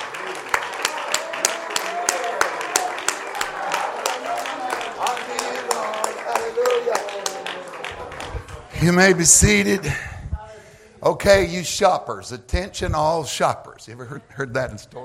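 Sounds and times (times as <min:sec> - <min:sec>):
audience clapping in praise: 0:00.0 - 0:09.8
speech: 0:08.8 - 0:10.1, 0:11.0 - 0:15.0.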